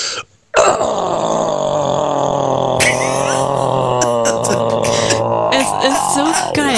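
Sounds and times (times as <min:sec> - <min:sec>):
man imitating a metal-style growl: 0:00.6 - 0:06.7.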